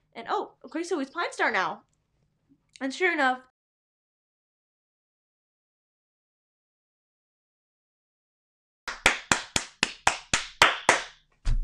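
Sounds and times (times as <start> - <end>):
speech: 0.3 - 1.9, 2.8 - 3.5
hands clapping: 8.9 - 11.2.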